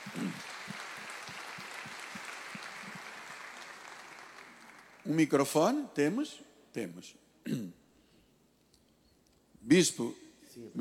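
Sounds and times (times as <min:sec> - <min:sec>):
crowd applauding: 0:00.0 - 0:05.2
speech: 0:05.1 - 0:07.8, 0:09.6 - 0:10.8.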